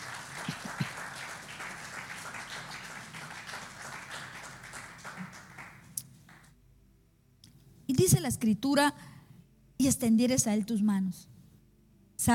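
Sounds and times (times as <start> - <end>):
audience applause: 0.0 - 6.5
speech: 8.0 - 9.2, 9.8 - 11.3.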